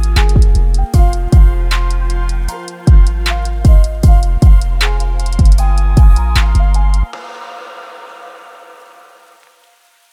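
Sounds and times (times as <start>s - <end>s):
angry sad trap beat in F minor: 0.0s - 7.2s.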